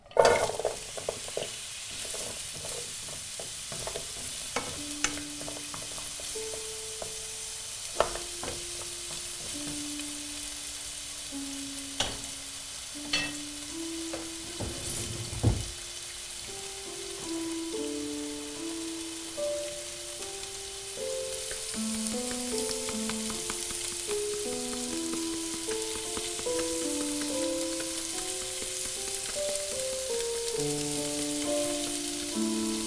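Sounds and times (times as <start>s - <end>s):
diced food sautéing in a pan: 0.0s - 32.8s
stirring clicks: 21.5s - 29.6s.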